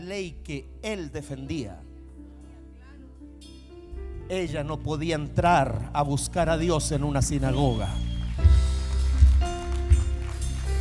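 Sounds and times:
speech: 0.1 - 1.9, 4.3 - 8.1
person clapping hands: 8.2 - 10.7.

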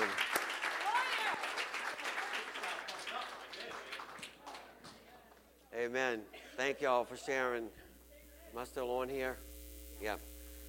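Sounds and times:
audience applause: 0.0 - 4.9
speech: 5.8 - 7.8, 8.5 - 10.3.

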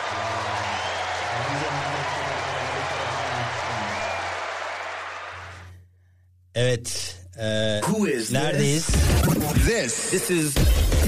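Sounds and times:
welcoming applause: 0.0 - 5.7
speech: 6.6 - 11.0.

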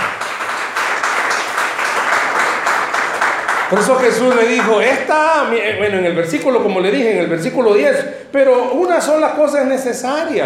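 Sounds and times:
audience applause: 0.0 - 5.0
speech: 3.7 - 10.4.

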